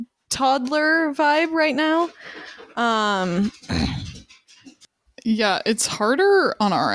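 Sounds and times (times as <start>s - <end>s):
speech: 0.3s - 4.0s, 5.2s - 6.9s
dog panting: 1.4s - 4.9s.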